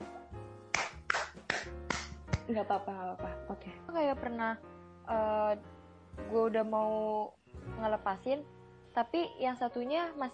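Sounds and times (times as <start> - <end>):
hand clapping: 0.7 - 2.5
speech: 2.5 - 10.3.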